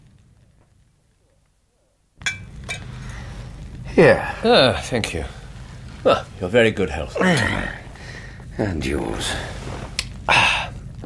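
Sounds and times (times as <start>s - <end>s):
glasses clinking: 2.2s - 2.9s
speech: 4.0s - 5.4s, 6.0s - 7.8s, 8.6s - 9.6s.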